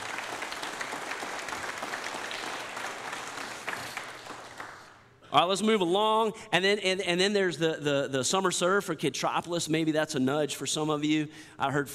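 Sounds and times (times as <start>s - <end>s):
room full of people applauding: 0.0s - 5.0s
speech: 5.3s - 11.9s.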